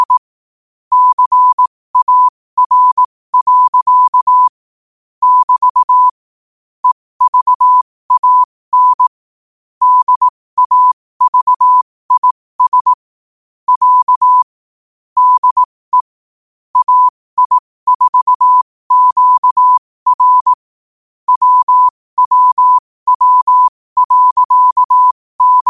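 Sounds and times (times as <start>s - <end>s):
morse code at 5 wpm: 0.0s - 0.3s, 0.9s - 4.6s, 5.2s - 6.2s, 6.8s - 9.1s, 9.8s - 13.1s, 13.7s - 14.5s, 15.2s - 16.2s, 16.8s - 20.6s, 21.3s - 25.6s.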